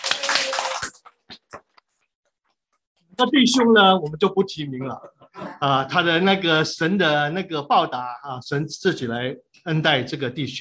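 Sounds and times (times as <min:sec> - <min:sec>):
applause: 0:00.0 - 0:01.3
speech: 0:03.2 - 0:10.5.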